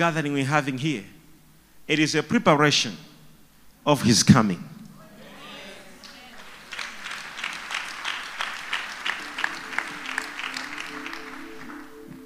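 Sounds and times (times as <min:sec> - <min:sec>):
speech: 0:00.0 - 0:01.2, 0:01.9 - 0:03.1, 0:03.8 - 0:04.7
audience clapping hands: 0:05.5 - 0:12.2.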